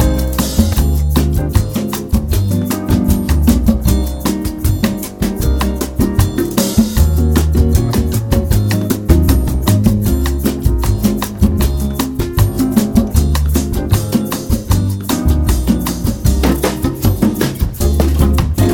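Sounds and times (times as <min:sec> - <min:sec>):
jazz workout piece in E flat: 0:00.0 - 0:18.7.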